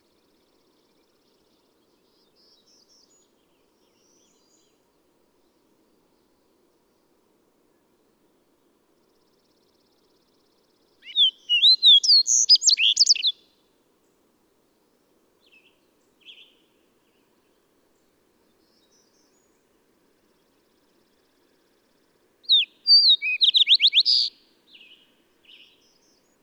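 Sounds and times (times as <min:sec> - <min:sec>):
bird whistled song: 0:11.0 - 0:13.4, 0:22.5 - 0:25.8.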